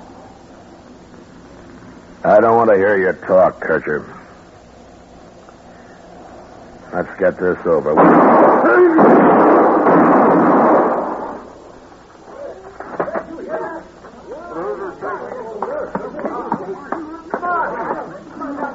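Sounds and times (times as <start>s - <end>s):
speech: 2.2s - 4.2s, 6.9s - 9.5s
gunshots in a gunfight in a Western radio drama: 8.0s - 11.6s.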